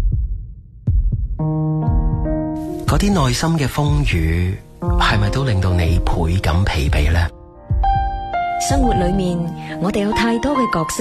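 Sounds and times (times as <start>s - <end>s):
heartbeat sound effect: 0.0s - 2.4s, 6.9s - 9.3s
speech: 2.9s - 7.4s, 8.6s - 10.9s.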